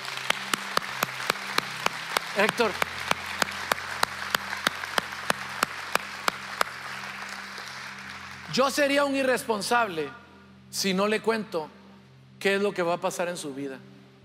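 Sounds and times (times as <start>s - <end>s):
audience applause: 0.0s - 8.6s
speech: 2.4s - 2.9s, 8.5s - 11.8s, 12.4s - 13.9s.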